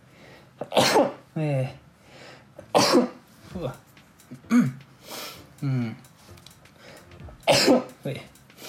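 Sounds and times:
speech: 0.6 - 1.8, 2.8 - 6.1, 7.5 - 8.3
sneeze: 0.7 - 1.2.

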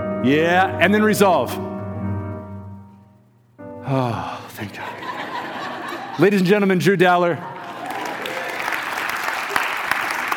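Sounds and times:
speech: 0.2 - 1.7, 3.9 - 5.0, 6.2 - 7.5
laughter: 4.0 - 6.4
audience applause: 7.6 - 10.3.

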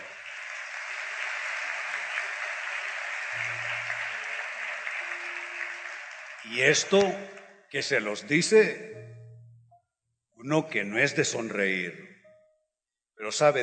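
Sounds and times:
audience applause: 0.0 - 7.5
speech: 6.4 - 9.0, 10.4 - 12.1, 13.2 - 13.6.

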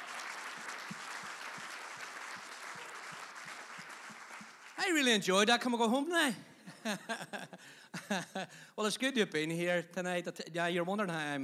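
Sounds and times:
audience applause: 0.0 - 5.2
speech: 4.9 - 11.4
laughter: 6.7 - 8.5.

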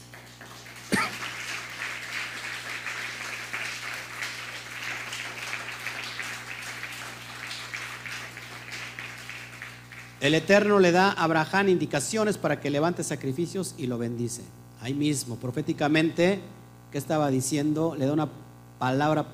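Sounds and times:
audience applause: 0.0 - 10.7
speech: 10.2 - 19.3.

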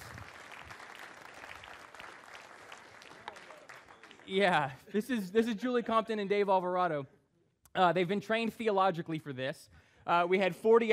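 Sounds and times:
round of applause: 0.0 - 4.9
speech: 4.3 - 7.2, 7.8 - 10.9.

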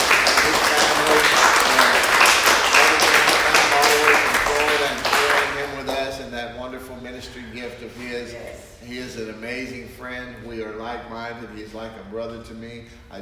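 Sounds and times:
audience hand clapping: 0.0 - 6.1
speech: 9.4 - 13.2.

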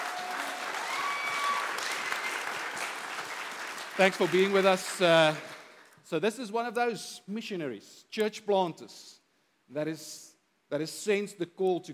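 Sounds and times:
church congregation clapping to welcome a guest missionary during a Sunday service: 0.0 - 6.0
speech: 4.0 - 5.5, 6.1 - 11.9.

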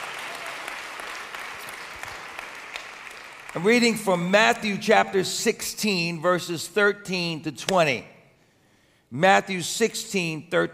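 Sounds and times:
audience applauding: 0.0 - 3.7
speech: 3.6 - 8.1, 9.1 - 10.7.

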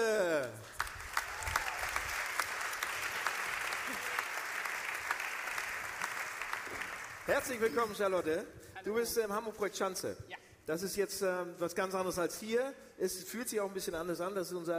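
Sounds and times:
audience applause: 0.4 - 7.6
speech: 7.3 - 14.7.

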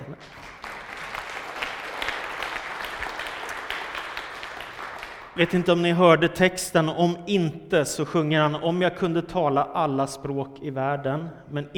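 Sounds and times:
applause: 0.0 - 5.7
speech: 5.4 - 11.7.

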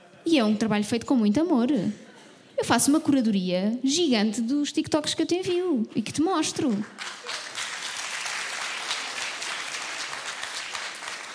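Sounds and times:
speech: 0.2 - 7.1
people clapping: 6.6 - 11.3.

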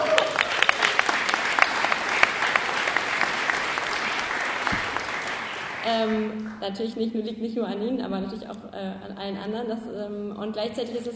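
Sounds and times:
audience applause: 0.0 - 6.6
speech: 5.9 - 11.1.

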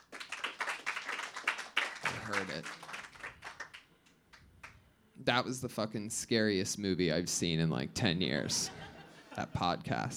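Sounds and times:
audience applause: 0.0 - 3.9
speech: 2.3 - 2.9, 5.2 - 8.8, 9.4 - 10.1
laughter: 8.4 - 9.6.

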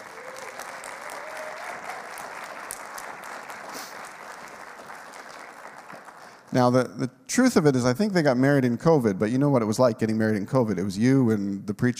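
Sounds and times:
audience applauding a newly married couple: 0.0 - 6.8
speech: 6.5 - 11.9.

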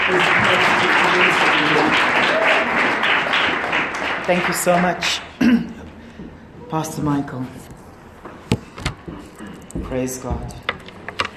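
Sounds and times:
audience clapping hands: 0.0 - 5.4
speech: 0.1 - 0.7, 4.3 - 5.8, 6.7 - 7.7, 9.9 - 10.6.

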